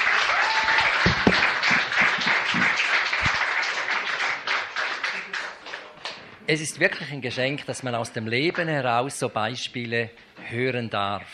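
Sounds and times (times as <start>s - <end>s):
audience applause: 0.0s - 6.2s
speech: 6.5s - 11.3s.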